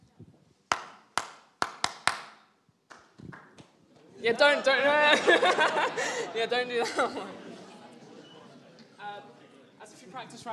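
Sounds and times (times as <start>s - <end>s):
hand-clapped rhythm: 0.7s - 3.8s
laughter: 4.0s - 9.0s
speech: 4.2s - 7.4s, 10.1s - 10.5s.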